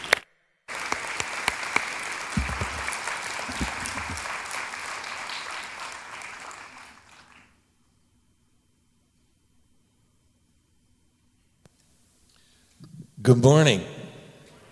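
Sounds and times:
audience applause welcoming a reverend at Celebration Church: 0.0 - 7.5
speech: 13.3 - 13.9.

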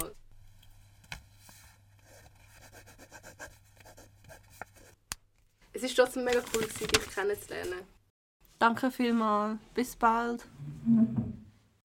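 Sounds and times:
pen scratching across paper writing a phone number: 2.0 - 5.0
speech: 5.8 - 8.0, 8.6 - 11.2.

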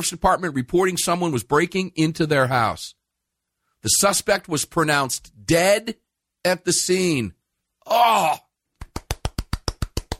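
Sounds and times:
speech: 0.0 - 3.0, 3.8 - 8.4
single person golf clapping: 8.8 - 10.1.

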